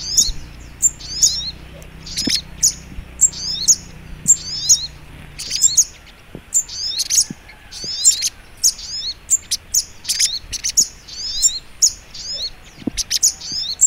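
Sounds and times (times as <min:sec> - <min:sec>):
little spiderhunter chirping: 0:00.0 - 0:13.8
faint low knocks: 0:01.8 - 0:08.2.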